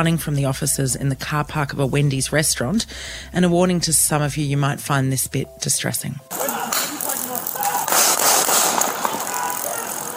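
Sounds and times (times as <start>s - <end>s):
speech: 0.0s - 6.4s
gunshots in news footage: 6.3s - 10.1s.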